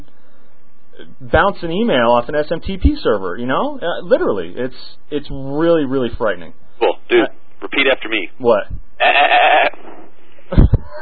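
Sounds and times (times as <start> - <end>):
speech: 1.0 - 9.8
sheep bleating: 9.0 - 9.8.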